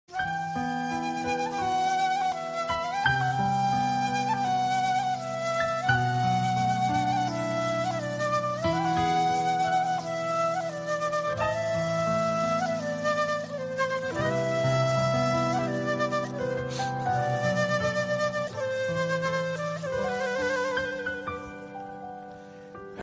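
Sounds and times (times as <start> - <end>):
romantic Turkish music: 0.1 - 23.0.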